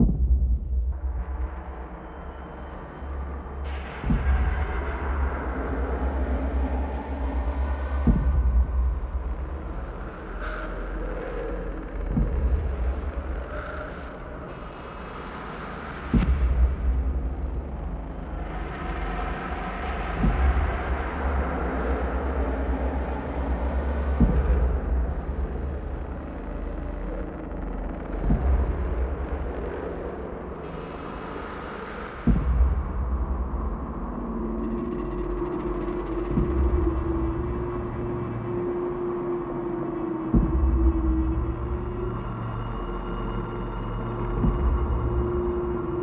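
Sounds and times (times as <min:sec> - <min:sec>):
enrage drone: 0:00.0 - 0:46.0.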